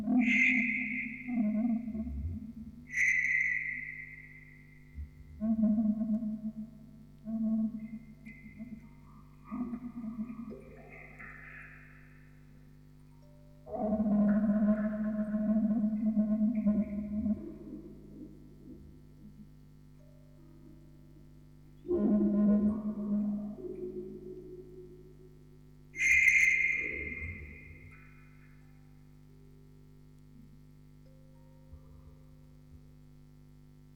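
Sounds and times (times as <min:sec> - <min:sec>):
vocoder recorded on tape: 0:00.0 - 0:03.9, 0:05.0 - 0:12.1, 0:13.7 - 0:19.5, 0:21.8 - 0:25.1, 0:26.0 - 0:28.1.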